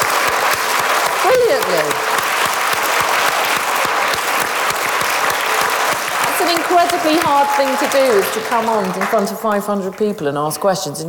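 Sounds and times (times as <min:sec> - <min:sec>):
round of applause: 0:00.0 - 0:10.2
speech: 0:01.3 - 0:02.2, 0:06.5 - 0:11.0.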